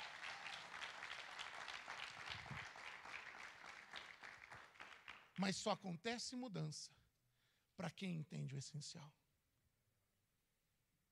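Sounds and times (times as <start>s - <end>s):
audience applauding: 0.0s - 5.5s
speech: 5.4s - 7.0s, 7.8s - 9.2s.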